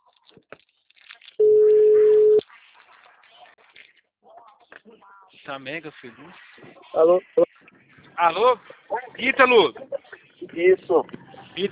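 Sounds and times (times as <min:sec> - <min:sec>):
telephone ringback tone during an outgoing call: 0:01.4 - 0:02.4
faint voices: 0:02.4 - 0:11.6
speech: 0:05.0 - 0:07.5, 0:08.2 - 0:09.9, 0:10.6 - 0:11.6.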